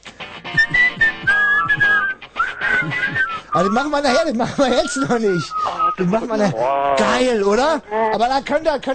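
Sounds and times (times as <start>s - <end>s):
group of people whistling a song: 0.5s - 4.0s, 4.7s - 6.0s
speech: 3.6s - 8.9s.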